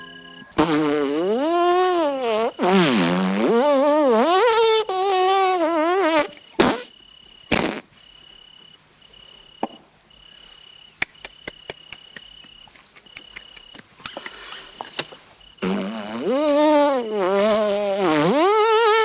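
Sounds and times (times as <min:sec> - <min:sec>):
fart: 0:00.5 - 0:06.9, 0:07.5 - 0:07.9, 0:15.6 - 0:19.0.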